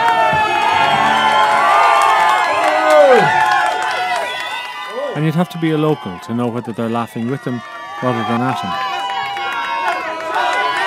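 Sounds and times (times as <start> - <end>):
crowd chanting a nickname and cheering: 0.0 - 10.8
speech: 5.2 - 8.9.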